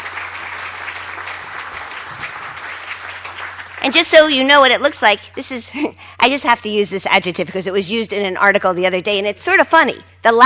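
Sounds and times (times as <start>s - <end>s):
audience applause: 0.0s - 4.2s
speech: 3.8s - 10.4s.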